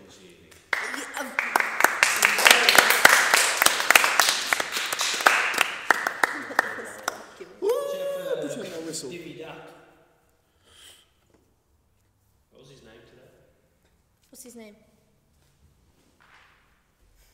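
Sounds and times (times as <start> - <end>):
crowd clapping: 0.5 - 7.9
laughter: 6.0 - 9.0
speech: 14.4 - 14.9.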